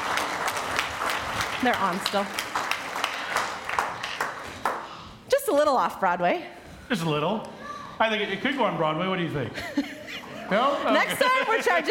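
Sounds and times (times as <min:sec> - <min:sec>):
round of applause: 0:00.0 - 0:05.0
speech: 0:01.6 - 0:02.5, 0:05.5 - 0:09.9, 0:10.5 - 0:11.8
laughter: 0:09.5 - 0:11.8.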